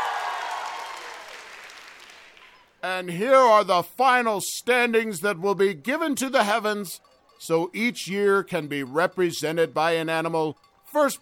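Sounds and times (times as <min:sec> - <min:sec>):
crowd cheering and applauding: 0:00.0 - 0:02.6
speech: 0:02.8 - 0:11.2.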